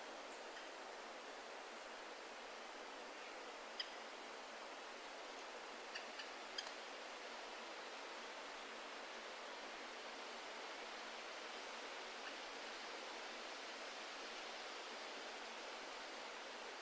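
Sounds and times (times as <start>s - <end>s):
wind rushing through the forest canopy: 0.0s - 16.8s
faint crisp ticks: 0.5s - 0.8s, 3.7s - 4.1s, 5.3s - 6.8s.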